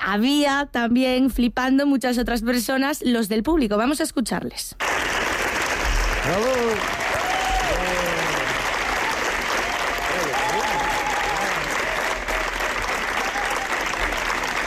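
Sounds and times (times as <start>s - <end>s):
speech: 0.0s - 5.0s, 6.3s - 7.0s
long audience applause: 4.8s - 14.6s.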